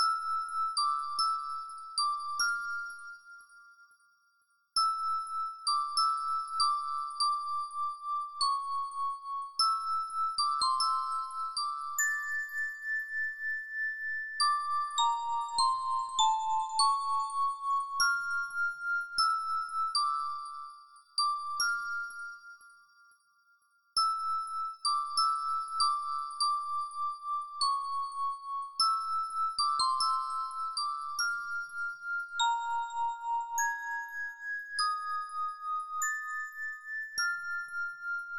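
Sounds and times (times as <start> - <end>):
bell: 0.0 - 38.3.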